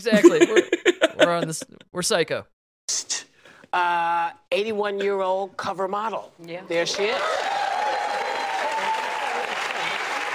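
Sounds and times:
laughter: 0.0 - 1.8
speech: 0.0 - 8.0
audience applause: 6.9 - 10.3.

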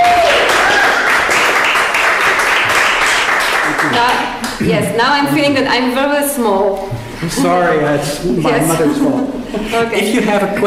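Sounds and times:
crowd applauding: 0.0 - 4.6
speech: 4.0 - 10.6
laughter: 7.2 - 10.2.

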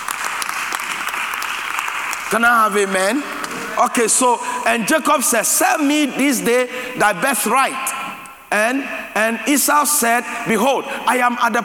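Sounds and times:
audience clapping: 0.0 - 3.8
speech: 2.3 - 11.6.

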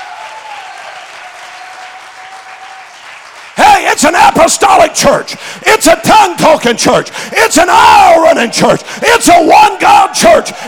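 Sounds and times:
audience clapping: 0.0 - 4.6
speech: 3.9 - 10.6.

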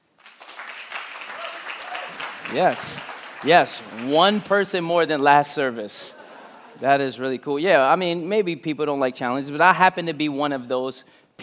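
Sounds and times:
crowd applause: 0.2 - 4.8
speech: 2.5 - 6.2, 6.8 - 11.4
laughter: 5.9 - 6.8.

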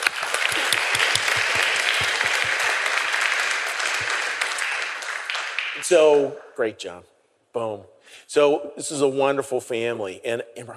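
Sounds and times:
audience applause: 0.0 - 6.4
speech: 5.9 - 10.7.

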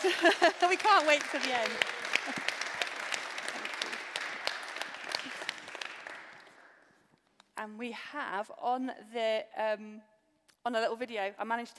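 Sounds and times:
speech: 0.0 - 2.5, 7.6 - 11.7
crowd applause: 0.0 - 6.8.

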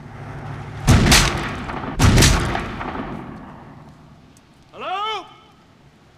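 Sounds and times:
gunshots in a scene from the action film Last Action Hero: 0.8 - 4.3.

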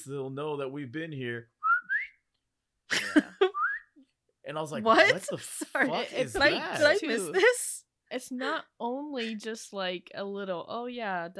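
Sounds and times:
speech: 0.0 - 1.6, 2.9 - 3.4, 4.5 - 11.3
person whistling to call the hounds in a film scene: 1.6 - 2.2, 3.5 - 4.0.

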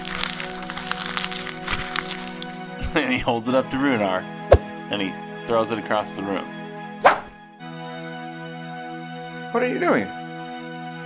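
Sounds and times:
parchment paper being crumpled into a ball: 0.0 - 2.8
speech: 2.9 - 6.6, 9.5 - 10.2.

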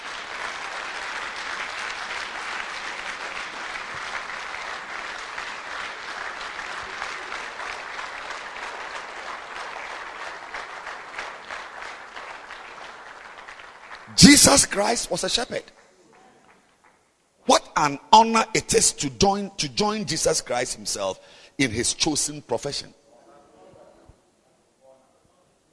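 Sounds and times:
crowd applause: 0.0 - 15.3
speech: 14.4 - 15.8, 17.8 - 23.0.

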